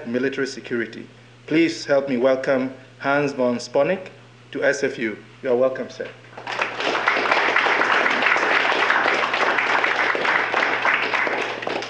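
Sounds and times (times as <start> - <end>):
speech: 0.0 - 6.2
audience applause: 6.4 - 11.8.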